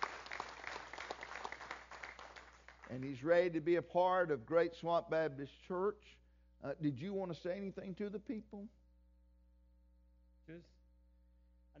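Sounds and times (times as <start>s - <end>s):
Baptist church congregation applauding at Great Swamp Baptist Church: 0.0s - 3.7s
speech: 2.9s - 8.8s, 10.5s - 10.8s.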